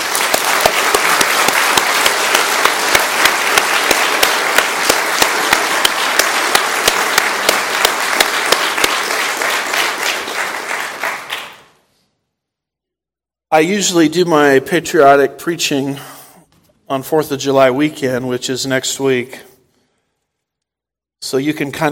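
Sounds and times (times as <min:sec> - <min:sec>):
audience applause: 0:00.0 - 0:11.8
speech: 0:13.5 - 0:16.1, 0:16.9 - 0:19.5, 0:21.2 - 0:21.8.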